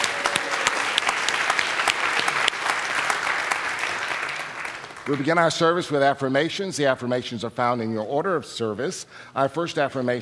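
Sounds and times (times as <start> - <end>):
audience applauding: 0.0 - 5.5
speech: 5.1 - 10.1.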